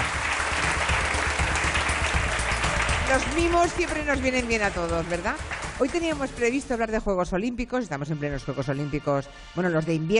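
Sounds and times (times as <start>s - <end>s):
audience applause: 0.0s - 6.2s
speech: 3.1s - 10.1s.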